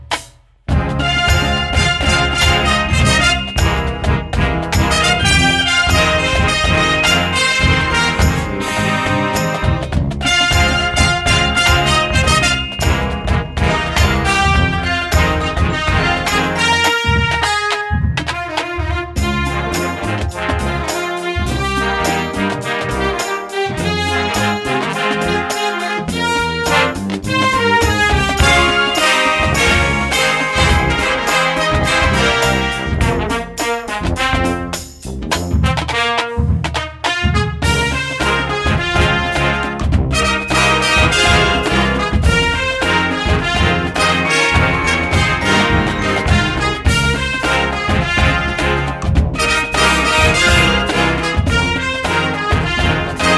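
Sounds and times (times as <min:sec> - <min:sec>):
marching band: 0:00.1 - 0:53.3.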